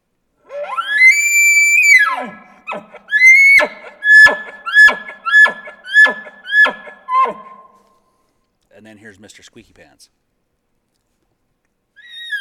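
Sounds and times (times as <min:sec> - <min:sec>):
bull elk basic bugle with grunts: 0:00.5 - 0:07.8
speech: 0:09.1 - 0:10.3.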